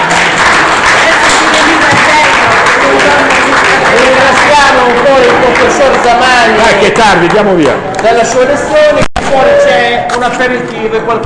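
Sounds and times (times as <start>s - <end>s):
audience applause: 0.0s - 7.8s
speech: 5.8s - 11.2s.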